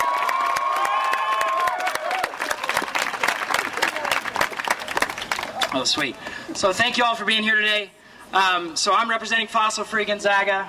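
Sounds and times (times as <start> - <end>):
high sustained cheer: 0.0 - 2.8
crowd shouting and whooping: 0.0 - 4.2
crowd applauding: 0.0 - 6.1
speech: 5.7 - 10.6.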